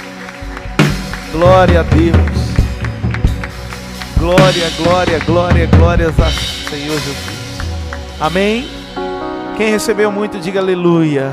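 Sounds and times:
audience applauding: 0.0 - 8.8
speech: 1.3 - 2.4, 4.2 - 7.3, 8.2 - 8.8, 9.6 - 11.3.

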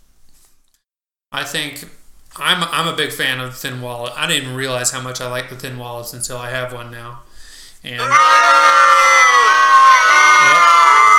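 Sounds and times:
speech: 1.4 - 9.1
disgruntled crowd groaning: 8.0 - 11.1.

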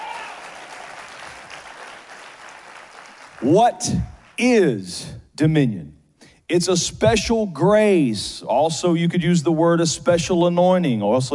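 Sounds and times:
audience clapping hands in praise: 0.0 - 4.4
speech: 3.4 - 11.3.

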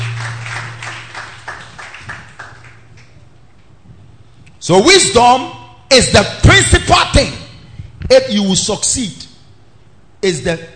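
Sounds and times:
audience clapping hands: 0.0 - 3.2
speech: 4.6 - 7.4, 8.0 - 9.2, 10.2 - 10.7.

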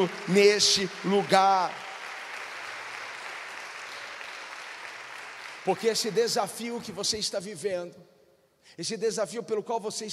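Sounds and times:
speech: 0.0 - 1.8, 5.6 - 10.1
audience applauding: 0.0 - 7.2.

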